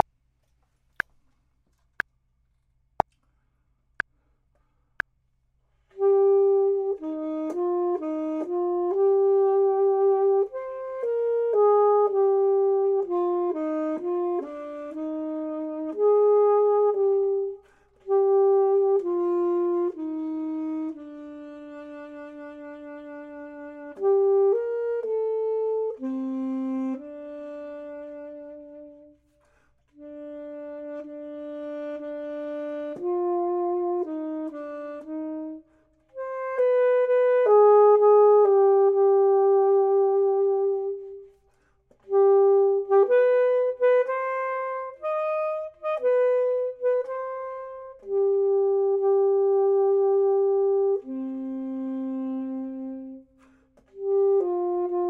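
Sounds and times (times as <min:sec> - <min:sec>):
clarinet: 0:05.8 - 0:55.0
saxophone: 0:05.8 - 0:55.0.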